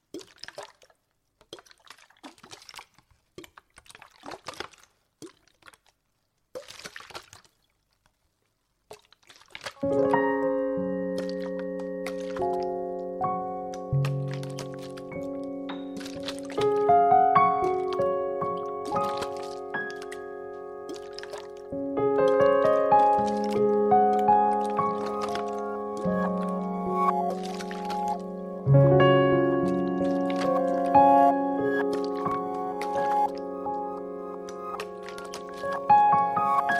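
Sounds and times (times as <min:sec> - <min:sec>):
little forest background music: 0:09.8 - 0:36.7.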